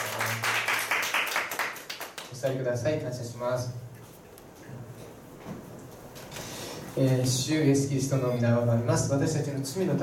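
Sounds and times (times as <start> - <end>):
crowd clapping together: 0.0 - 2.4
speech: 2.4 - 3.9, 7.0 - 10.0.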